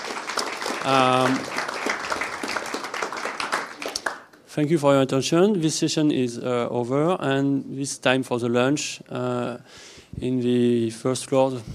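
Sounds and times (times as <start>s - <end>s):
audience applause: 0.0s - 4.4s
speech: 0.8s - 1.6s, 4.6s - 11.7s.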